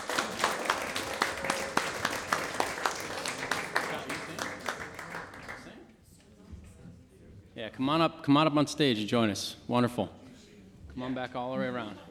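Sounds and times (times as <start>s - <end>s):
audience applause for veterans: 0.0s - 5.8s
speech: 7.6s - 10.2s, 11.0s - 12.0s.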